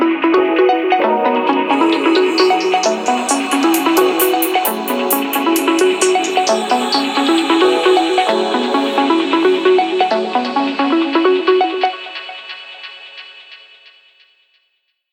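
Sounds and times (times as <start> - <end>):
ringtone: 0.4 - 11.2.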